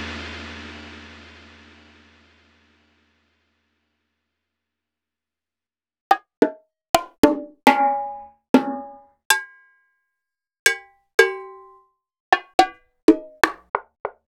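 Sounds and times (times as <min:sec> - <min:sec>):
Roland BK-5 keyboard percussion: 0:06.1 - 0:09.4, 0:10.7 - 0:11.7, 0:12.3 - 0:13.6.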